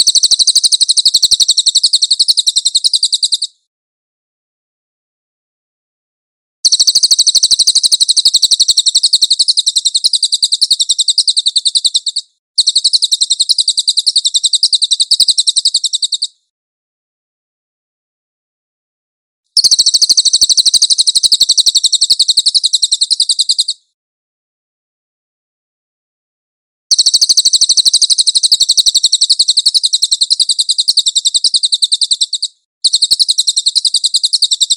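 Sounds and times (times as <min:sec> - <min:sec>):
cililin trilling: 0:00.0 - 0:03.5, 0:06.7 - 0:16.3, 0:19.6 - 0:23.8, 0:26.9 - 0:34.7.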